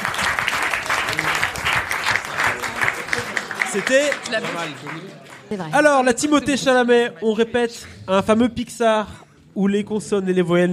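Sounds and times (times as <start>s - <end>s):
audience applause: 0.0s - 6.3s
speech: 3.8s - 10.7s.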